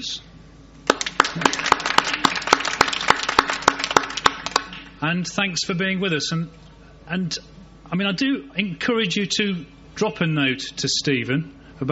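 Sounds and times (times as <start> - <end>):
speech: 0.0 - 0.3, 1.4 - 1.6, 5.0 - 11.9
hand clapping for a discussion panel: 0.8 - 4.9.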